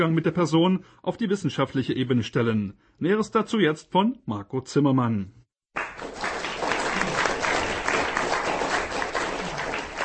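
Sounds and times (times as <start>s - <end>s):
speech: 0.0s - 5.4s
audience applause after a lecture: 5.8s - 10.0s.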